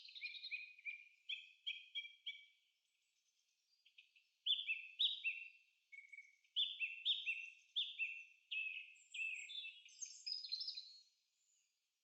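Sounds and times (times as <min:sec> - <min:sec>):
forest sounds: 0:00.0 - 0:11.8.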